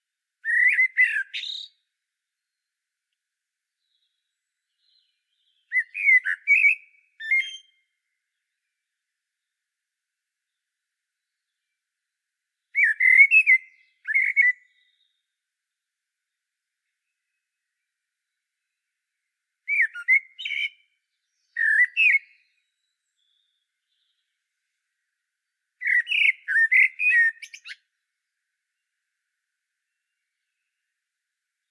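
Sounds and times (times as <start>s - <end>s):
common blackbird whistled song: 0.4s - 1.8s, 3.8s - 7.9s, 12.7s - 15.2s, 19.6s - 24.3s, 25.8s - 27.9s.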